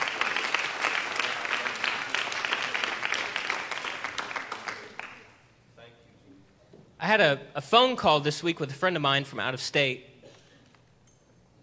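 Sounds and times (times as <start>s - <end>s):
audience applause: 0.0s - 5.2s
speech: 7.1s - 10.1s.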